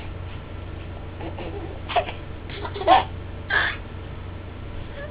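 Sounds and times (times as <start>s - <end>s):
person laughing: 1.2s - 3.7s.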